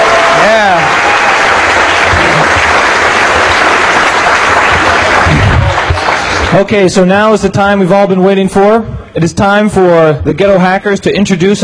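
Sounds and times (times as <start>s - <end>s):
audience applause: 0.0s - 6.8s
speech: 6.5s - 11.6s.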